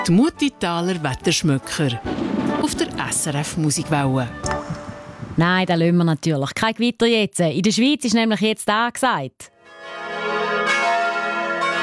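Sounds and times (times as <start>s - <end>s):
speech: 0.0s - 4.7s, 5.4s - 9.5s
wedding bell ringing with a sustained metallic hum: 9.7s - 11.8s.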